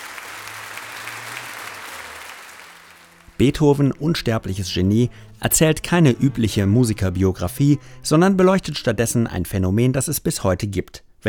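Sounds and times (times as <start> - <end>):
large theatre audience applauding: 0.0 - 3.7
speech: 3.4 - 11.2.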